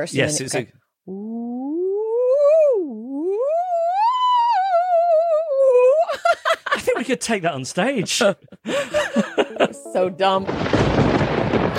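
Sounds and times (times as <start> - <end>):
speech: 0.0 - 1.2, 7.0 - 9.0, 10.0 - 11.0
voice imitating a theremin: 1.1 - 6.1
laughter: 6.0 - 10.1.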